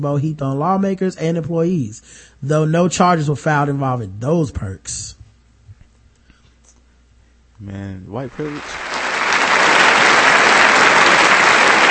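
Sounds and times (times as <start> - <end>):
speech: 0.0 - 5.2, 7.6 - 8.8
crowd applauding: 8.3 - 11.8.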